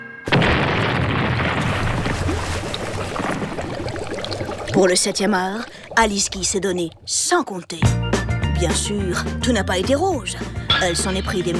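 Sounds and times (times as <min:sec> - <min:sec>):
boat explosion: 0:00.3 - 0:07.2
speech: 0:04.8 - 0:08.0, 0:08.6 - 0:11.5.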